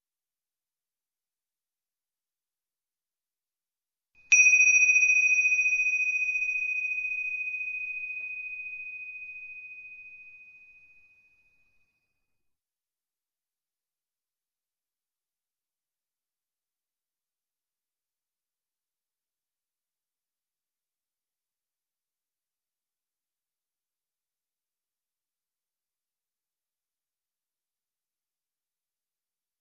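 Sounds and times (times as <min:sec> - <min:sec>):
bells: 0:04.3 - 0:11.1.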